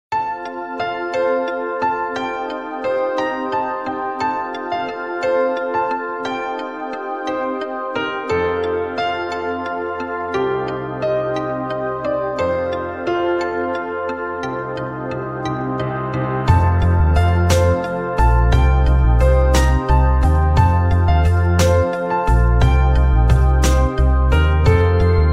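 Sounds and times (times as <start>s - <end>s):
cool tone ringtone: 0.2s - 25.3s.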